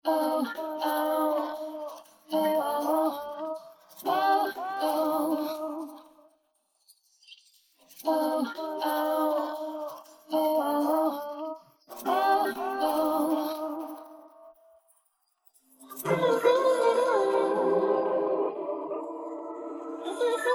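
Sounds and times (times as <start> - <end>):
isolated song vocals: 0.0 - 6.3, 7.9 - 14.4, 15.9 - 20.5.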